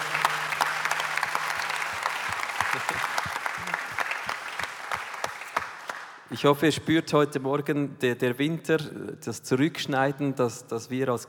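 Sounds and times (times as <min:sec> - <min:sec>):
audience applause: 0:00.0 - 0:06.2
speech: 0:06.3 - 0:11.2.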